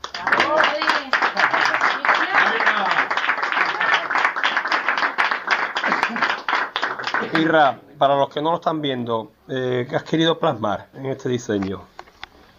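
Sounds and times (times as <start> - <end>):
audience applause: 0.0 - 7.7
speech: 7.4 - 11.9.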